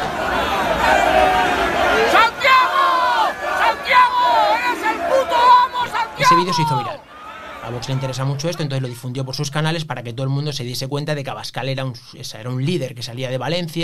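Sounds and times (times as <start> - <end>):
crowd chanting at a rally: 0.0 - 9.0
speech: 6.4 - 7.0, 7.6 - 13.8.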